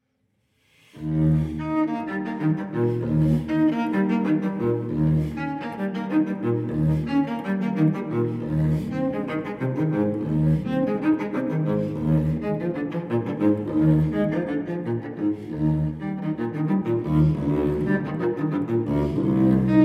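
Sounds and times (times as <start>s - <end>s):
solo cello playing: 0.8s - 19.8s.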